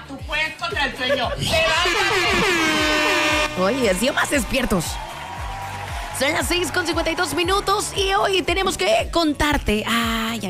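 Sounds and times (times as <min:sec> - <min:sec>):
speech: 0:00.1 - 0:02.8, 0:03.6 - 0:05.1, 0:06.2 - 0:10.4
wake-up alarm horn sound effect: 0:01.6 - 0:04.5.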